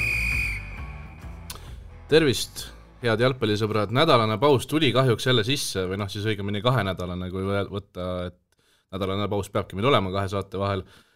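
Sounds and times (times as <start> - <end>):
football referee's final whistle: 0.0 - 1.2
speech: 2.1 - 11.1.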